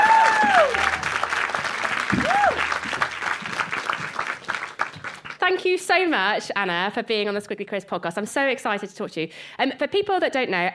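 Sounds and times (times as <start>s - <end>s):
audience applause for a guest at a live careers talk: 0.0s - 5.5s
speech: 5.6s - 10.7s.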